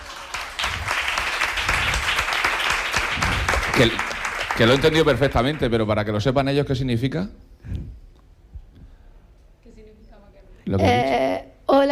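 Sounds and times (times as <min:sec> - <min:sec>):
crowd applauding: 0:00.0 - 0:06.2
speech: 0:03.8 - 0:07.9, 0:10.7 - 0:11.2.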